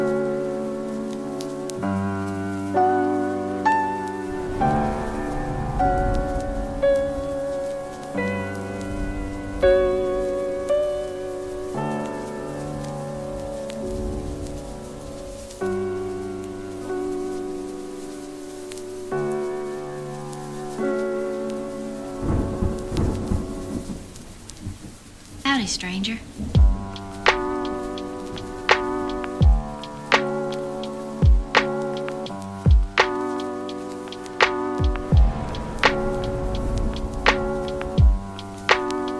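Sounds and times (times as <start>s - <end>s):
music: 0.0s - 24.8s, 25.4s - 39.1s
rain: 0.0s - 39.1s
thunder: 4.2s - 16.1s, 22.1s - 25.0s, 26.3s - 30.6s, 34.3s - 39.1s.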